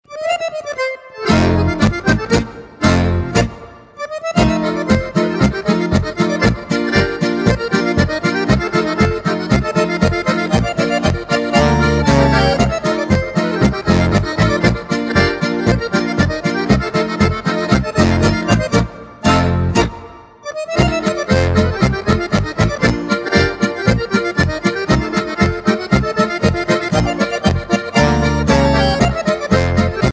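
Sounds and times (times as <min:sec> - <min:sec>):
accordion: 0:00.0 - 0:30.1.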